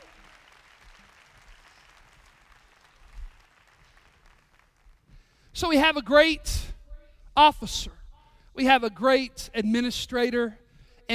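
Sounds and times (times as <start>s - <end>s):
audience clapping: 0.0s - 5.4s
speech: 5.6s - 6.7s, 7.4s - 8.0s, 8.6s - 11.1s.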